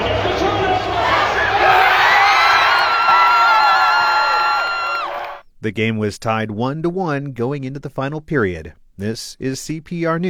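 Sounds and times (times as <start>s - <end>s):
students cheering a Pioneers goal inside Magnus Arena: 0.0s - 5.4s
students whooping and shouting: 1.4s - 5.4s
speech: 5.6s - 10.2s.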